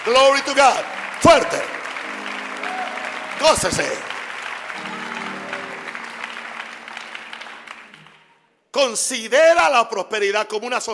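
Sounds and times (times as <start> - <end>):
audience applauding: 0.0 - 8.5
speech: 0.1 - 1.8, 3.4 - 4.1, 8.7 - 10.9.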